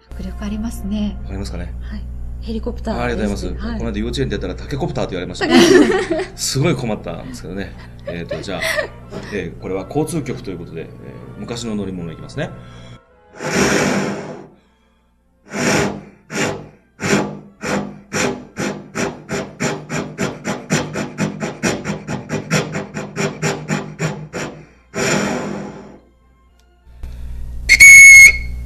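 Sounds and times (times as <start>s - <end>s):
speech: 0.3s - 13.6s
laughter: 5.4s - 6.5s, 7.1s - 9.6s
tuba imitating a steam train: 13.4s - 14.5s, 15.5s - 26.0s
tuba high whistle blast: 27.7s - 28.6s.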